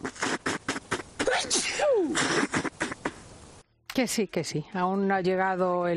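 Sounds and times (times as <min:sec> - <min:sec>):
person sneezing: 0:00.2 - 0:03.1
person coughing: 0:01.2 - 0:02.9
speech: 0:04.0 - 0:05.9.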